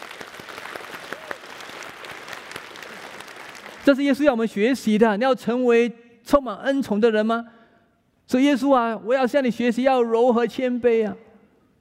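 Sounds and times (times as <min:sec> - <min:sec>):
audience applause: 0:00.0 - 0:03.8
speech: 0:03.9 - 0:07.6, 0:08.3 - 0:11.2.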